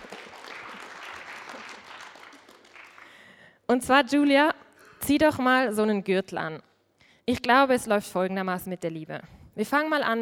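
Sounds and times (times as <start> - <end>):
applause: 0.0 - 3.6
speech: 3.7 - 4.5, 5.1 - 6.7, 7.3 - 10.2.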